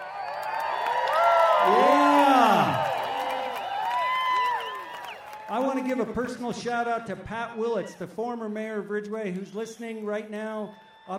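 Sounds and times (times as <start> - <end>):
clapping: 0.0 - 6.2
crowd cheering: 0.0 - 8.7, 9.3 - 11.1
speech: 5.8 - 11.1.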